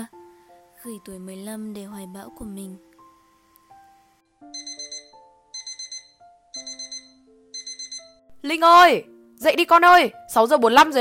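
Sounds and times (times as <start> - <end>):
speech: 0.8 - 2.9, 8.4 - 10.9
alarm clock ringing: 4.5 - 8.2.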